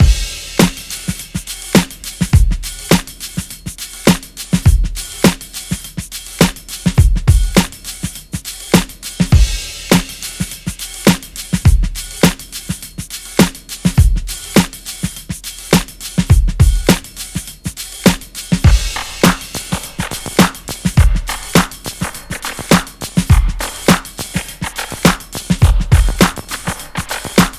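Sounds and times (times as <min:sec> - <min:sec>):
funky electro disco breaks music: 0:00.0 - 0:27.5.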